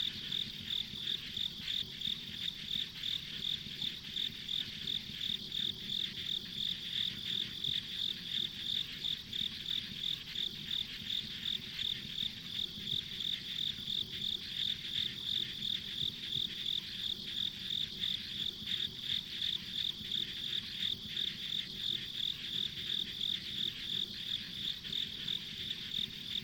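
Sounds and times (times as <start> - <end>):
insect pulsed chirping: 0.0 - 26.4.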